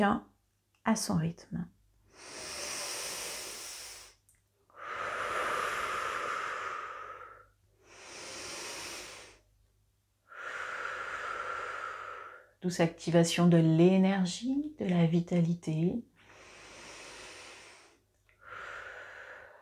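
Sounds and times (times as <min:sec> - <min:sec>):
speech: 0:00.0 - 0:02.5, 0:12.6 - 0:16.1
slow deep breathing in and out: 0:02.1 - 0:09.5, 0:10.3 - 0:12.6, 0:16.2 - 0:19.6.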